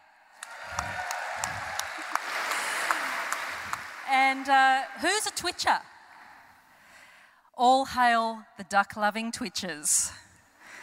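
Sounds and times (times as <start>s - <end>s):
crowd applause: 0.4s - 5.6s
speech: 4.1s - 5.9s, 7.6s - 10.2s.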